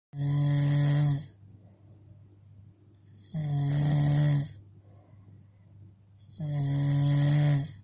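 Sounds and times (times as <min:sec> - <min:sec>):
person snoring: 0:00.2 - 0:01.4, 0:03.1 - 0:04.6, 0:06.2 - 0:07.8.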